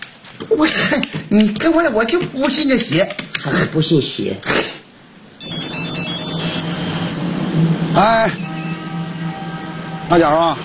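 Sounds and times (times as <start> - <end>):
speech: 0.4 - 4.8, 8.0 - 8.5, 10.1 - 10.6
telephone ringing with high-pitched electronic trill: 5.4 - 7.2.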